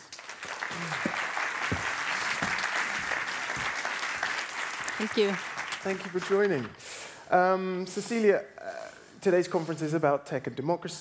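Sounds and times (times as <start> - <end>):
audience round of applause: 0.0 - 6.8
speech: 5.0 - 8.6, 9.2 - 11.0.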